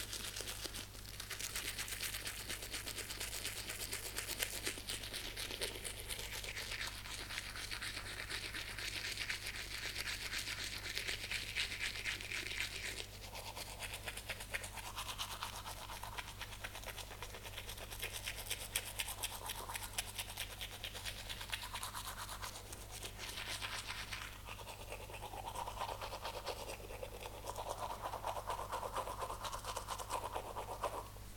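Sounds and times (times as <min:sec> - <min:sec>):
teeth brushing: 0:00.0 - 0:31.1.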